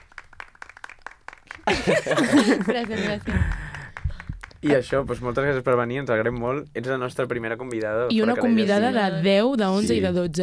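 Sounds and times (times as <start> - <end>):
applause sound effect played in by a host: 0.0 - 1.8, 2.8 - 5.0
laughter: 1.6 - 3.8
speech: 1.7 - 3.6, 4.6 - 10.4.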